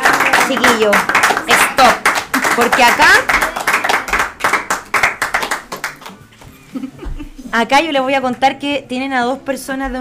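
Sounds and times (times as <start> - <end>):
audience applause: 0.0 - 6.2
speech: 0.5 - 1.2, 2.6 - 3.4, 7.6 - 9.9.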